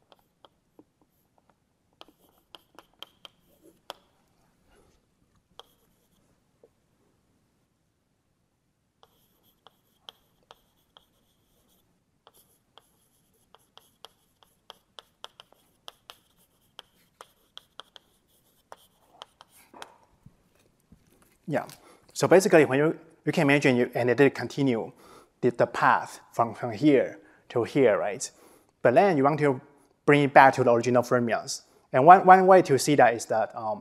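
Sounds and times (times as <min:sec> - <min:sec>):
writing on a board during a physics lecture: 0:00.0 - 0:01.4, 0:02.0 - 0:04.2, 0:05.6 - 0:06.2, 0:09.0 - 0:20.0
speech: 0:21.5 - 0:33.8.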